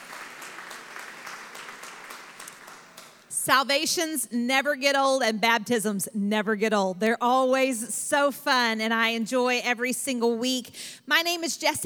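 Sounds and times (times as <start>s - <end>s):
audience hand clapping: 0.0s - 3.3s
speech: 3.4s - 11.8s.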